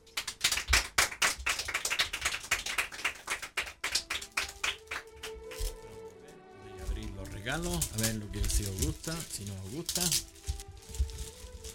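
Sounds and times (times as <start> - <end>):
audience applause: 0.0 - 5.9
speech: 7.5 - 10.4.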